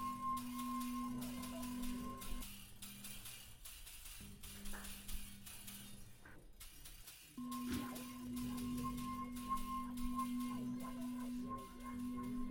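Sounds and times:
kitchen pots made to sing, low ringing tone: 0:00.0 - 0:03.1, 0:07.3 - 0:12.4.

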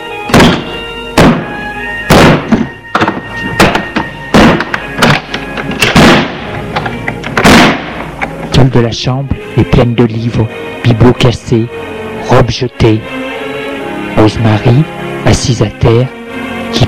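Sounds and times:
door being forced open with heavy thuds and bangs: 0:02.1 - 0:08.0
speech: 0:08.7 - 0:13.2, 0:14.2 - 0:16.8.

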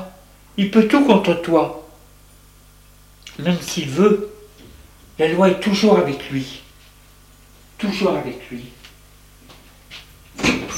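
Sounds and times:
speech: 0:00.6 - 0:01.8, 0:03.3 - 0:04.3, 0:05.2 - 0:06.6, 0:07.8 - 0:08.8
door being opened: 0:10.3 - 0:10.7.

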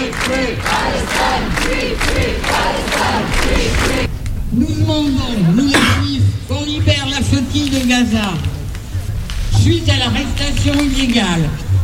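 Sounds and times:
large protest rally crowd chanting in unison: 0:00.0 - 0:04.1
speech: 0:00.2 - 0:08.6, 0:09.6 - 0:11.8.

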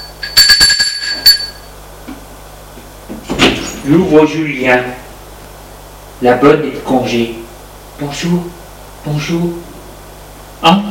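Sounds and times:
doorbell ringing at front door: 0:00.0 - 0:01.7
speech: 0:03.9 - 0:05.0, 0:06.2 - 0:07.4, 0:08.0 - 0:09.6, 0:10.6 - 0:10.8.

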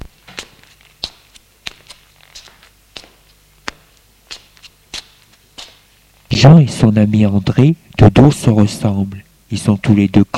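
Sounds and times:
footsteps of two people walking together about a room: 0:00.0 - 0:06.3
speech: 0:06.4 - 0:10.3.

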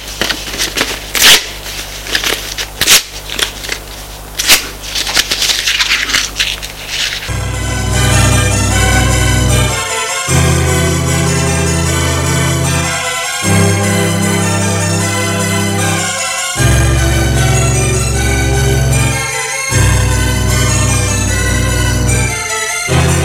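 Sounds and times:
paper letter being torn up: 0:00.0 - 0:07.3
sustained tonal music bed: 0:07.3 - 0:23.2.

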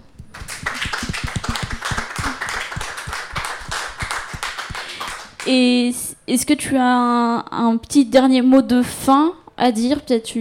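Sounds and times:
hand clapping: 0:00.0 - 0:05.5
speech: 0:05.5 - 0:10.4.

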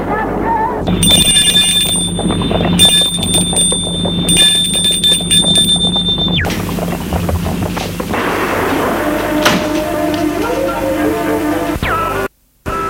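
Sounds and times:
low rumbling background: 0:00.6 - 0:11.8
electric gate bell ringing: 0:00.9 - 0:06.5.

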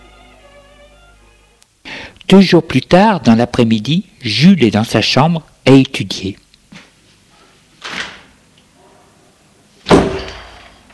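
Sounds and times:
speech: 0:02.3 - 0:06.4
door flung open with force: 0:09.9 - 0:10.7.

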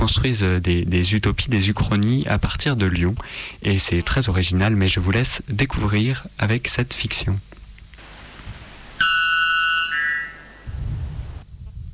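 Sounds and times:
speech: 0:00.0 - 0:07.5
piercing electronic radio news jingle: 0:09.0 - 0:11.0.

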